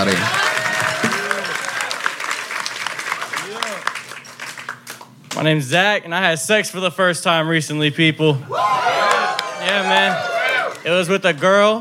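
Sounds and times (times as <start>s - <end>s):
audience applause: 0.0s - 5.1s, 8.8s - 11.6s
speech: 5.4s - 8.8s, 9.7s - 11.8s.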